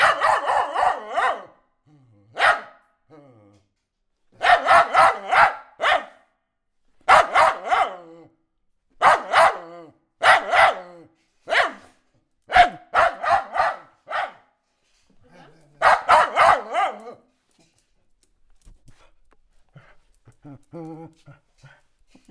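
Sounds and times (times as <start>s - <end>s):
dog barking: 0.0s - 1.6s, 2.4s - 3.0s, 4.4s - 6.3s, 7.0s - 8.2s, 9.0s - 14.6s, 15.4s - 17.2s.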